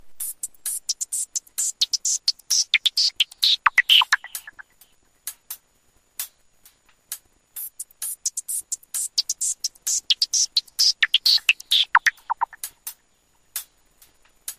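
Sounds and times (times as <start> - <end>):
Microsoft Lumia hip hop: 0.2 - 4.6, 7.6 - 12.6.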